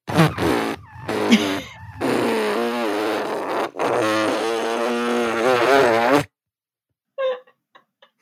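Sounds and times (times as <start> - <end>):
person vocally imitating a long dog fart with their lips: 0.0 - 6.3.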